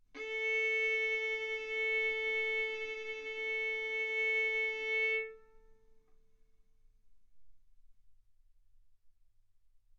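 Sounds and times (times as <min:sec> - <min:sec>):
violin bowed arco notes: 0:00.2 - 0:05.8.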